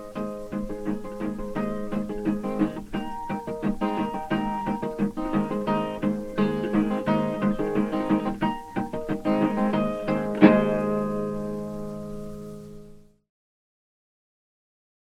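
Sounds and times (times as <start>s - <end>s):
blues slide guitar: 0.0s - 12.9s.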